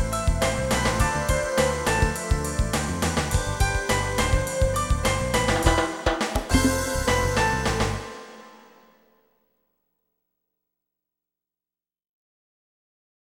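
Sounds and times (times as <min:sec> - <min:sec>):
contemporary music theme: 0:00.0 - 0:09.0.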